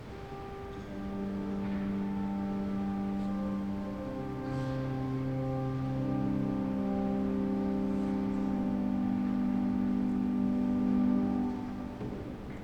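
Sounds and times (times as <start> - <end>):
organ interlude: 0.0 - 12.6.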